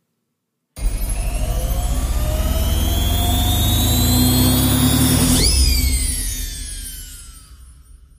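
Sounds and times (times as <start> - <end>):
washing machine running: 0.8 - 6.5.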